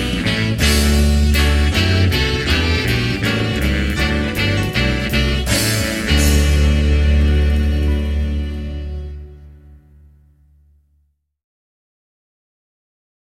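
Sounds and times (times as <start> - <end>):
big band playing a hymn: 0.0 - 9.8.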